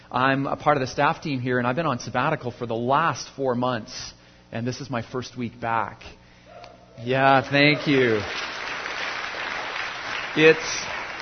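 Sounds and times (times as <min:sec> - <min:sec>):
speech: 0:00.1 - 0:06.2, 0:07.0 - 0:08.5, 0:10.4 - 0:10.9
audience applause: 0:07.4 - 0:11.2.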